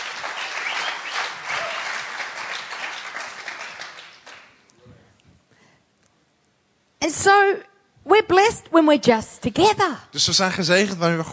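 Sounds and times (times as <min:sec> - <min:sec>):
audience applause: 0:00.0 - 0:04.6
speech: 0:07.0 - 0:11.3.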